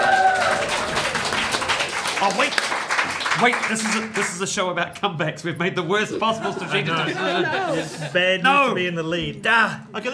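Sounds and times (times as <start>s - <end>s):
audience applause: 0.0s - 4.4s
speech: 2.2s - 2.7s, 3.4s - 10.1s
laughter: 6.0s - 9.0s.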